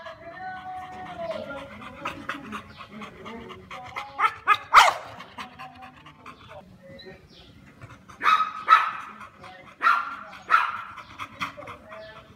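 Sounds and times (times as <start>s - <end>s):
bull dog barking: 4.2s - 5.2s, 8.2s - 9.2s, 9.8s - 10.9s.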